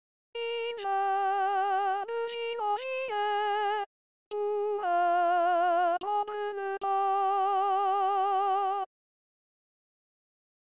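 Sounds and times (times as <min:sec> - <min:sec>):
women singing first voice part: 0:00.4 - 0:08.9.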